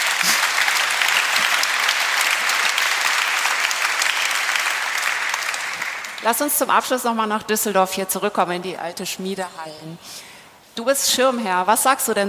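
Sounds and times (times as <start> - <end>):
audience applause: 0.0 - 6.3
speech: 6.2 - 12.2.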